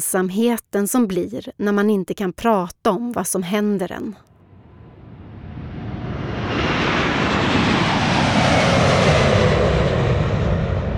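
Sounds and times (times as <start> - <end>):
speech: 0.0 - 4.3
airplane engine roar during takeoff: 4.3 - 10.9.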